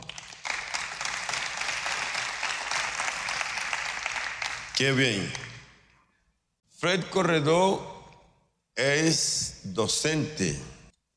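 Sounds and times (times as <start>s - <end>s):
audience applause: 0.0s - 4.8s
speech: 4.8s - 5.4s, 6.8s - 8.0s, 8.8s - 10.8s.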